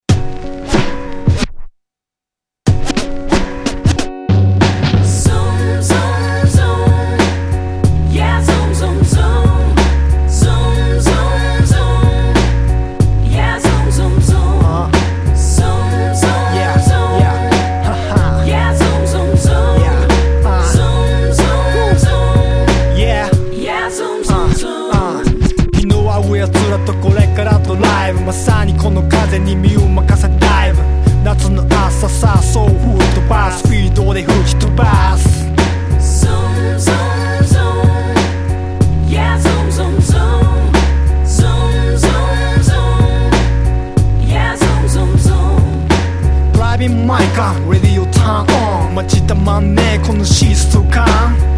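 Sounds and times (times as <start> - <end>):
hip hop music: 2.7 - 51.5.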